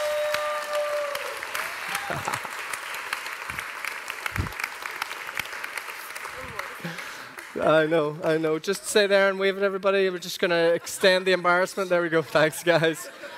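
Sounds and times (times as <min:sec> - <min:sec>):
audience applause: 0:00.0 - 0:08.2
laughter: 0:01.9 - 0:02.6, 0:10.5 - 0:13.3
speech: 0:02.1 - 0:02.5, 0:07.6 - 0:13.2.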